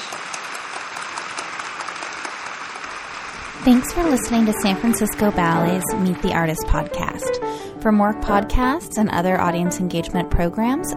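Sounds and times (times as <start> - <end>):
crowd applauding: 0.0 - 7.4
speech: 3.6 - 10.9.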